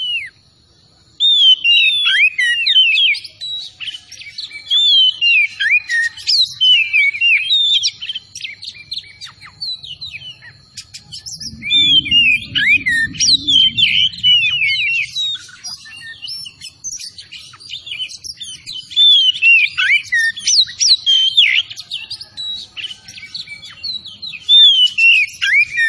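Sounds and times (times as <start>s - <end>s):
Oriental magpie-robin whistles and chirps: 0.0s - 25.8s
low rumbling: 10.8s - 15.8s.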